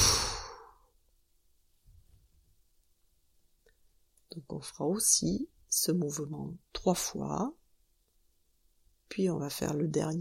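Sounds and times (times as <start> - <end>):
long exhale of held breath during a neck-relaxation breathing exercise: 0.0 - 0.9
speech: 4.4 - 7.6, 9.1 - 10.2.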